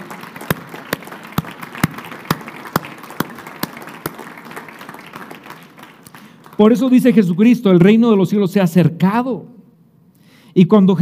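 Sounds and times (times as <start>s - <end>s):
audience applause: 0.0s - 7.3s
speech: 6.6s - 9.6s, 10.6s - 11.0s.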